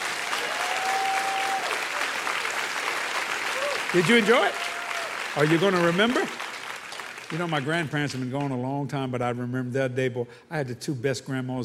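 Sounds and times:
audience hand clapping: 0:00.0 - 0:09.0
speech: 0:03.9 - 0:04.6, 0:05.4 - 0:06.4, 0:07.3 - 0:11.6.

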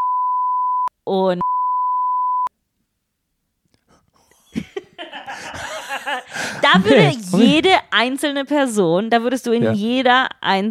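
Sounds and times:
censor bleep over a name: 0:00.0 - 0:02.5
speech: 0:01.0 - 0:01.5, 0:06.1 - 0:10.6
laughter: 0:04.4 - 0:07.8.

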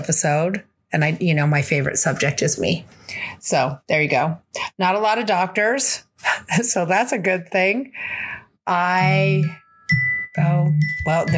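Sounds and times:
speech: 0:00.0 - 0:09.6, 0:10.4 - 0:11.3
phone or computer notification chime: 0:09.0 - 0:11.3.

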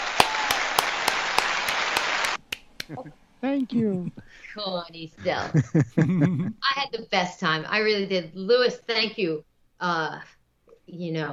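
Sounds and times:
applause: 0:00.0 - 0:02.4
laughter: 0:02.8 - 0:06.7
speech: 0:02.9 - 0:11.3.

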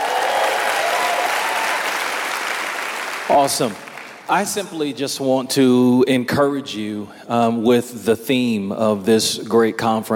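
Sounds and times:
audience clapping: 0:00.0 - 0:04.7
speech: 0:03.3 - 0:10.1.

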